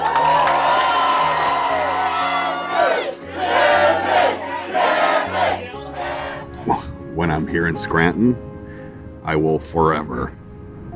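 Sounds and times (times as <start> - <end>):
crowd cheering and whooping at the Backyard Ale House in Scranton: 0.0 - 6.4
speech: 7.5 - 8.5, 9.2 - 10.4.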